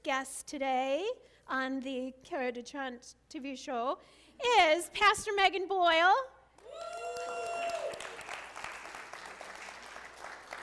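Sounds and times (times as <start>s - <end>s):
speech: 0.1s - 7.0s
audience applause: 6.8s - 10.6s.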